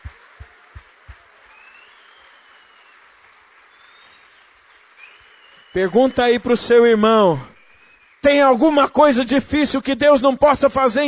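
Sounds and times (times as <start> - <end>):
audience applauding: 0.0 - 8.8
speech: 5.8 - 7.5, 8.2 - 11.0.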